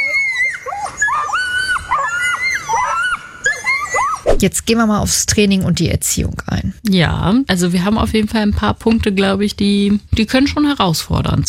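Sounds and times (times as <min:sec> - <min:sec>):
duck tolling retriever's shrill Toller scream: 0:00.0 - 0:04.4
speech: 0:04.4 - 0:11.4.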